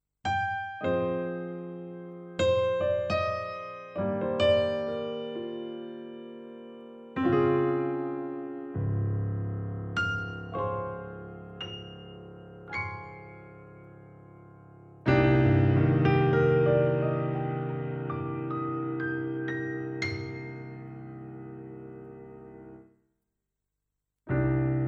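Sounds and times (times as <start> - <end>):
piano: 0.2 - 23.0, 24.3 - 24.8.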